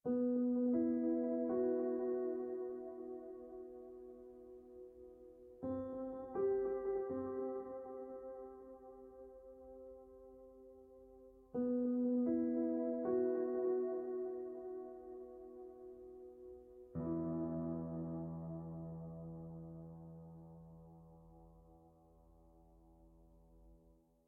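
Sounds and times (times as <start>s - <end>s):
solo piano: 0.0s - 24.2s.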